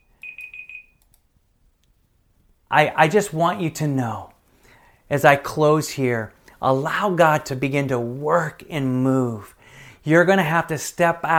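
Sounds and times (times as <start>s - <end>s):
buzzer alarm beeping: 0.0s - 1.0s
speech: 2.7s - 4.3s, 5.1s - 11.3s.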